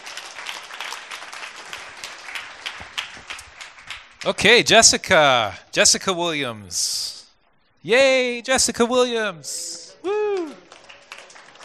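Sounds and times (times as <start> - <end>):
audience applause: 0.0 - 4.5, 10.0 - 11.6
speech: 4.2 - 7.2, 7.8 - 9.8.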